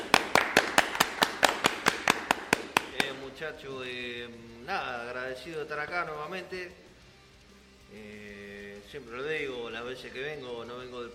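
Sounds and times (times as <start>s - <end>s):
sharp claps: 0.0s - 3.4s
speech: 3.4s - 6.9s, 7.9s - 11.1s.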